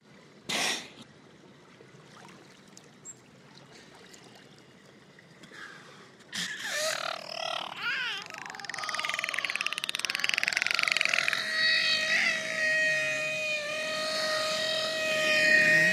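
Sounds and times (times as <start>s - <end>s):
beluga squealing: 6.6s - 15.9s.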